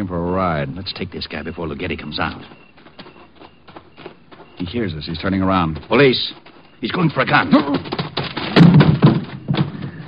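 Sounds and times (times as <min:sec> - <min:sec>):
speech: 0:00.0 - 0:02.7, 0:04.6 - 0:08.0
heavy body thuds of a man tackled to the ground: 0:07.6 - 0:10.0.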